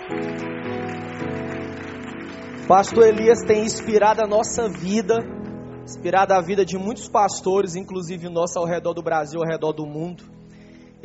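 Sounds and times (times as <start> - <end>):
applause: 0.0 - 5.4
speech: 2.7 - 10.4.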